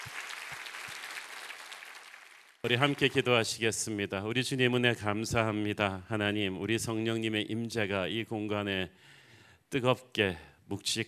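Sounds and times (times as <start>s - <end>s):
church congregation clapping in praise during worship: 0.0s - 3.4s
speech: 2.6s - 11.0s.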